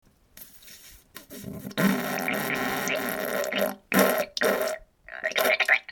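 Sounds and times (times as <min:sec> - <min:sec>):
diarrhea fart: 0:01.2 - 0:05.8.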